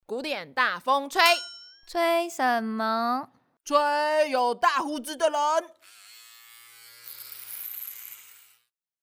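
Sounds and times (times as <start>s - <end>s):
speech: 0.1s - 6.0s
electric shaver shaving off beards: 5.8s - 8.7s.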